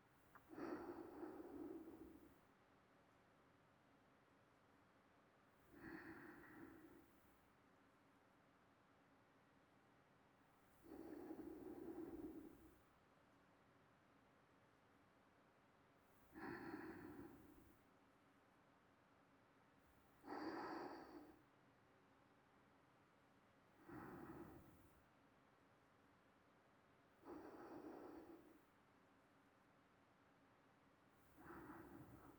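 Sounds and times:
sleeping breathing: 0.4 - 2.4, 5.7 - 7.2, 10.8 - 12.8, 16.3 - 17.8, 20.2 - 21.4, 23.8 - 25.0, 27.2 - 28.7, 31.2 - 32.3.

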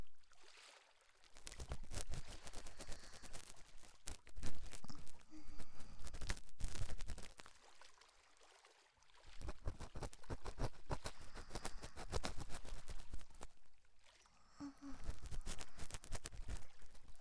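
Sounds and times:
left ear cleaning: 1.6 - 7.0, 9.5 - 13.3, 14.8 - 16.6.

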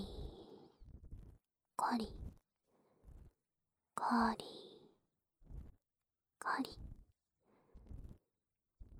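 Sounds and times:
ear cleaning ASMR: 0.2 - 1.5, 2.1 - 2.4, 3.0 - 3.4, 5.4 - 5.8, 7.8 - 8.2.

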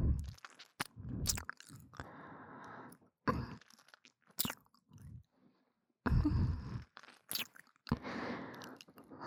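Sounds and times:
ASMR ear licking sounds: 0.2 - 2.1, 3.5 - 5.1, 6.8 - 9.0.

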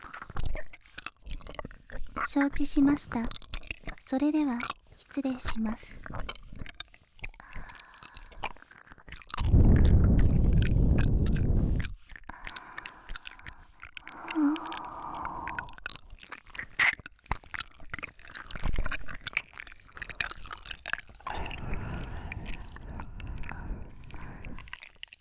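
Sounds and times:
wet ear licking mouth sounds: 0.0 - 25.1
speech: 2.3 - 3.4, 4.1 - 6.3
faint breathy noise: 9.4 - 15.8, 21.2 - 24.9.

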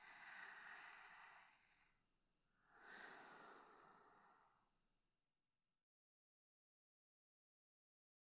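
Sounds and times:
sleeping breath: 0.0 - 2.0, 2.6 - 4.7.

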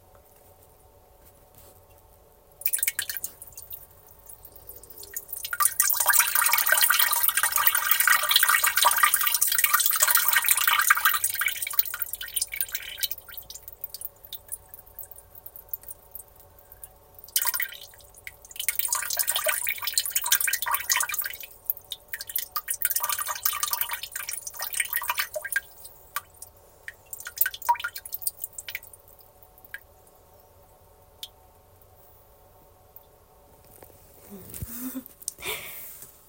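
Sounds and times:
urine streaming into a toilet: 2.6 - 29.9.

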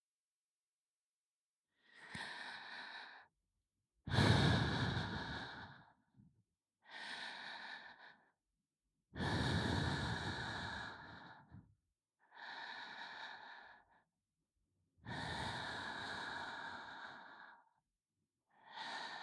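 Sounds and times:
binaural ASMR breathing in the right ear: 1.8 - 3.4, 4.1 - 6.2, 6.8 - 8.4, 9.2 - 14.1, 15.1 - 17.8, 18.5 - 19.2.

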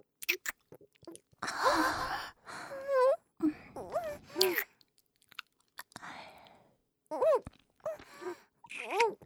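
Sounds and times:
alternating fellatio ASMR sounds: 0.3 - 2.1, 3.8 - 6.5, 7.3 - 9.2.

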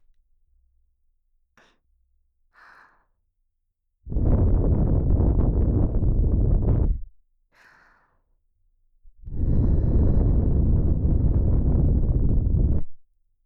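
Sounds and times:
blowing into ear: 4.1 - 7.1, 9.3 - 12.9.

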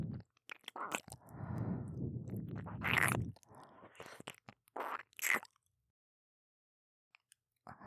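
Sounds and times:
ear licking by a dark elf maid: 0.1 - 5.5.

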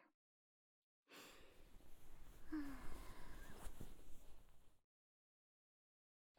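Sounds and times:
head massage for sleep: 1.6 - 4.7.

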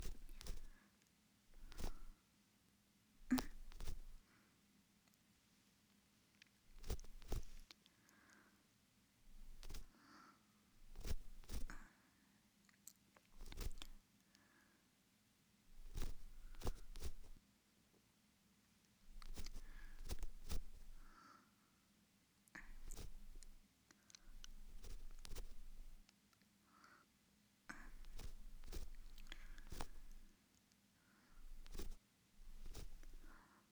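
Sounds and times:
ear cleaning in the right ear: 0.0 - 0.7, 1.6 - 2.2, 3.3 - 4.2, 6.7 - 7.6, 9.3 - 9.9, 10.8 - 11.8, 13.4 - 14.0, 15.8 - 17.4, 19.1 - 21.1, 22.6 - 23.6, 24.3 - 26.0, 27.8 - 30.3, 31.4 - 33.4.

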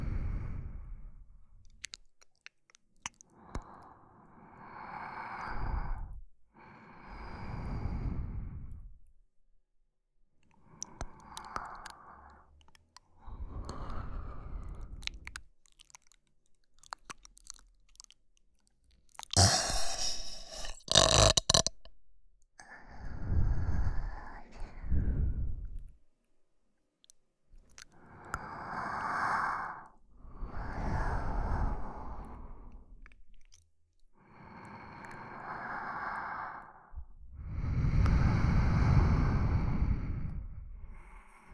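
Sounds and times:
sleeping breathing: 3.6 - 8.9, 13.2 - 15.3, 19.4 - 21.7, 22.6 - 25.7, 28.0 - 32.9, 34.4 - 41.5
burp: 19.4 - 21.8.

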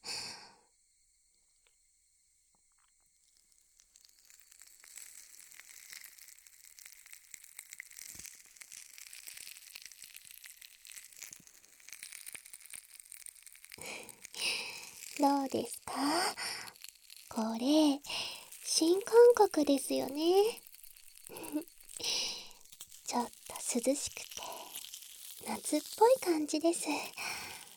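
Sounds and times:
crackling product applied to earlobes: 2.6 - 27.7
speech: 15.2 - 16.5, 17.4 - 18.2, 18.8 - 20.6, 23.2 - 24.3, 25.7 - 27.2.

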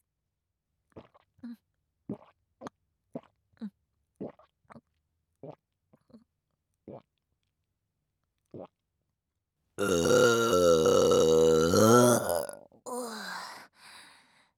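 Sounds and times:
person burping: 9.8 - 13.1.

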